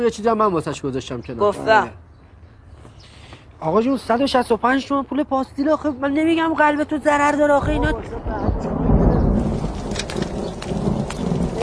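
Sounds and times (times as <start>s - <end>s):
speech: 0.0s - 2.0s, 3.6s - 8.9s
thunder rumble: 7.6s - 11.6s
rainfall: 8.7s - 11.6s.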